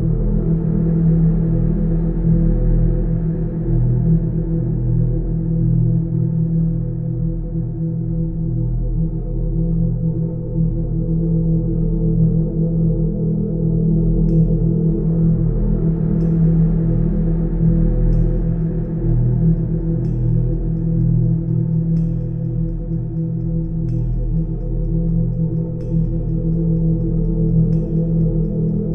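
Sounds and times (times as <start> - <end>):
ominous horror ambiance background music: 0.0 - 28.9.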